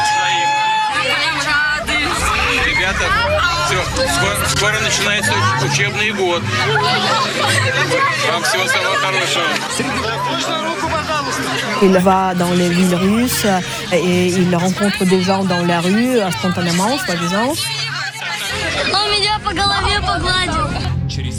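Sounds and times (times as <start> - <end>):
dense crowd chattering in an outdoor street: 0.9 - 21.1
speech: 3.8 - 17.9, 18.8 - 20.8
people laughing: 6.2 - 19.0.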